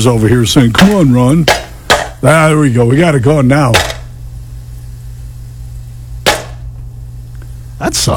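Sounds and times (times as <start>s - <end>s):
speech: 0.0s - 1.6s, 2.2s - 3.9s, 7.8s - 8.1s
running microwave humming: 0.0s - 8.1s
popcorn kernel popping in a microwave: 0.8s - 2.3s, 3.6s - 4.1s, 6.2s - 6.8s.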